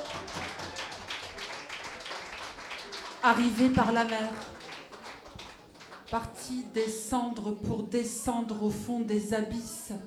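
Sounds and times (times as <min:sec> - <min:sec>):
audience applause: 0:00.0 - 0:06.6
speech: 0:03.2 - 0:04.6, 0:06.1 - 0:10.0.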